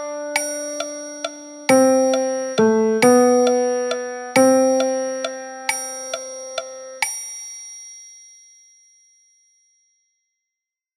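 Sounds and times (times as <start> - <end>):
piano music: 0.0 - 7.0.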